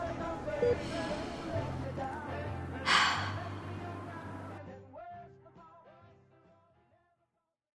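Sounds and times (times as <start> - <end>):
soundscape: 0.2 - 4.6.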